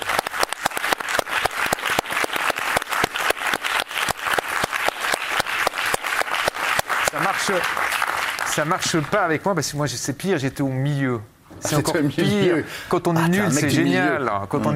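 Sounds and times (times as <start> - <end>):
audience applause: 0.0 - 9.2
speech: 7.5 - 14.7.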